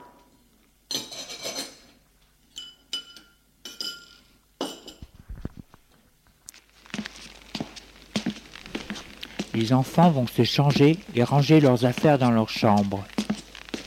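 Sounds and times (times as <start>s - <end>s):
dishes and glassware clinking as a cook prepares dinner: 0.9s - 1.9s, 2.5s - 5.1s
speech: 9.6s - 13.2s.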